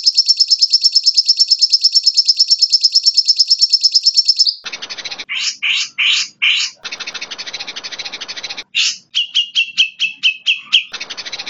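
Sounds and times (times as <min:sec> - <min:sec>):
bird high trill: 0:00.0 - 0:11.4.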